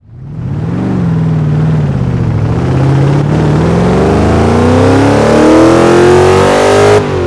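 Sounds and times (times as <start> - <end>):
vehicles: 0.0 - 7.2.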